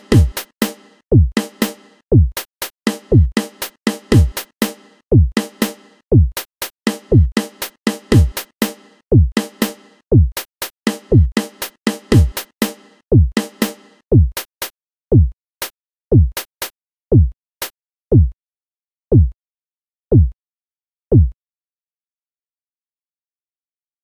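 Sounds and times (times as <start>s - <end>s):
drum: 0.0s - 15.4s, 16.1s - 17.3s, 18.1s - 18.4s, 19.1s - 19.4s, 20.1s - 20.4s, 21.1s - 21.4s.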